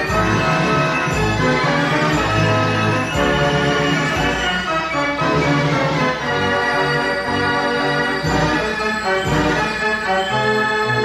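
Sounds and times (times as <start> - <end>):
fair organ playing a busy tune: 0.0 - 11.0.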